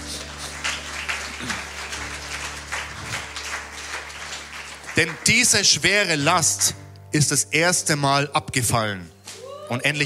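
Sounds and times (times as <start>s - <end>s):
crowd applauding: 0.0s - 6.8s
speech: 5.0s - 10.0s.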